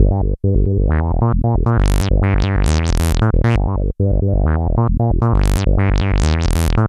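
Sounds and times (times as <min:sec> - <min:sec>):
bass loop: 0:00.0 - 0:06.8.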